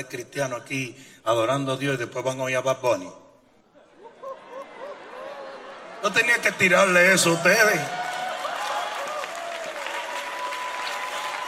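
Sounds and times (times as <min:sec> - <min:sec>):
speech: 0:00.0 - 0:03.2, 0:06.0 - 0:08.0
laughter: 0:03.8 - 0:07.4
audience applause: 0:04.6 - 0:11.4.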